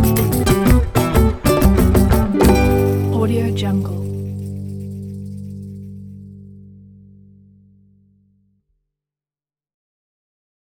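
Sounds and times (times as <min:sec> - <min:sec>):
Mediterranean bossa nova music: 0:00.0 - 0:06.4.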